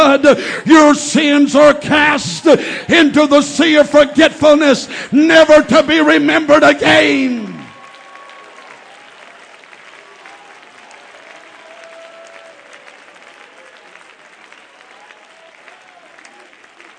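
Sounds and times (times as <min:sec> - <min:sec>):
speech: 0:00.2 - 0:07.5
audience applause: 0:07.0 - 0:16.9.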